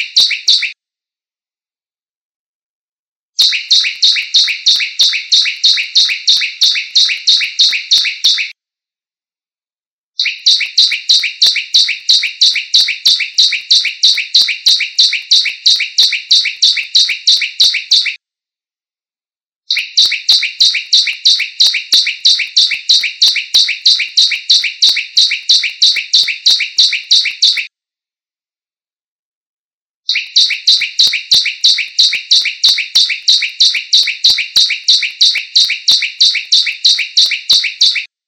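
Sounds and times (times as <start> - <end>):
ciblek bird singing: 3.4 - 8.5, 10.2 - 18.2, 19.7 - 27.7, 30.1 - 38.1.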